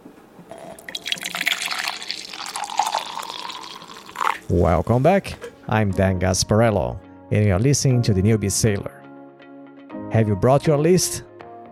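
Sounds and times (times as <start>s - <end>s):
coffee being poured into a cup: 0.5s - 4.6s
speech: 4.5s - 9.0s, 10.1s - 11.3s.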